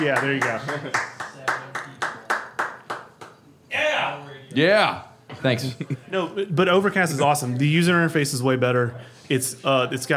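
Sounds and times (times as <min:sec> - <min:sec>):
speech: 0:00.0 - 0:01.2, 0:04.5 - 0:10.1
hand clapping: 0:00.0 - 0:03.4.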